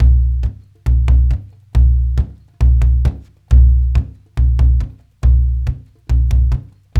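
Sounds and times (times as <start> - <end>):
African ethnic drums: 0.0 - 6.9.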